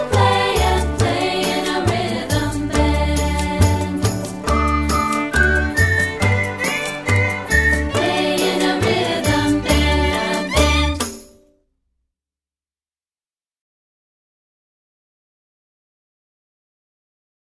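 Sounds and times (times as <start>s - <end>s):
rhythm band full performance: 0.0s - 11.4s.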